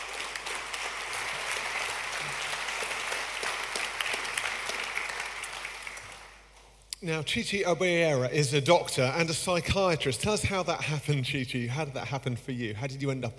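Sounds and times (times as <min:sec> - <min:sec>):
audience clapping: 0:00.0 - 0:06.8
speech: 0:07.0 - 0:13.3.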